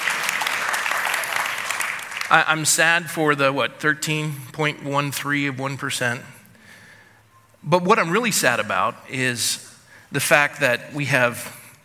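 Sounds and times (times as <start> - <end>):
hand clapping: 0.0 - 2.4
speech: 2.3 - 6.4, 7.6 - 11.6.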